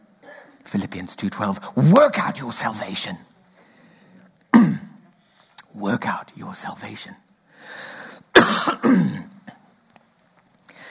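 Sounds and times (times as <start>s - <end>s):
speech: 0.7s - 3.3s, 5.8s - 7.8s
man coughing after something went down the wrong pipe: 4.5s - 4.9s, 8.4s - 9.6s.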